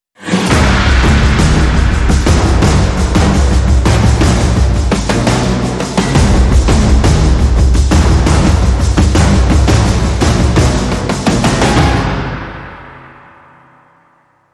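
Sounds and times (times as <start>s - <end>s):
tribal fighting music: 0.2s - 13.8s.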